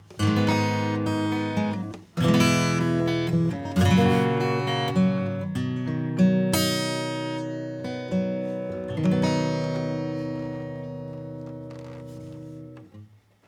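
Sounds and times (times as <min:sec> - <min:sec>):
acoustic music: 0:00.0 - 0:13.1.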